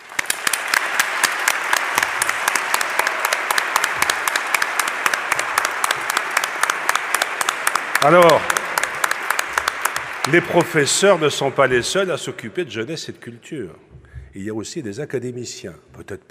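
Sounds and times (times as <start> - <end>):
audience applauding in an amphitheatre: 0.0 - 12.1
speech: 8.0 - 8.5, 10.3 - 16.2.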